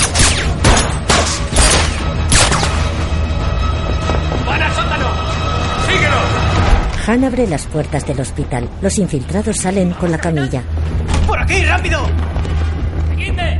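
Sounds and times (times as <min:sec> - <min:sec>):
gunshots in a war film shootout: 0:00.0 - 0:02.9
rumbling background: 0:00.0 - 0:13.5
speech: 0:07.1 - 0:12.4.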